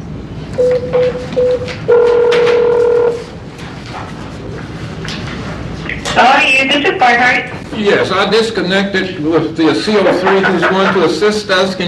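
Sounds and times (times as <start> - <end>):
speech: 0.6 - 2.6, 6.2 - 11.8
telephone keypad DTMF tones dialing an extension: 0.6 - 3.2
laughter: 9.7 - 11.5.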